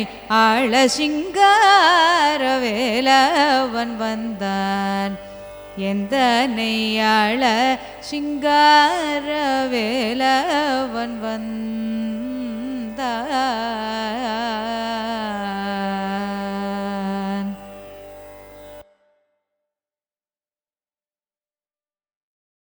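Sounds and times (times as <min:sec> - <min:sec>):
Carnatic raga performance: 0:00.0 - 0:19.3.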